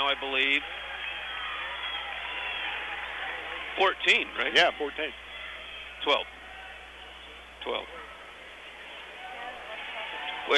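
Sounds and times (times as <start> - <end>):
crowd applause and cheering at basketball game: 0.0 - 7.0, 9.1 - 10.5
speech: 0.1 - 0.9, 3.8 - 5.2, 6.0 - 6.4, 7.6 - 8.0.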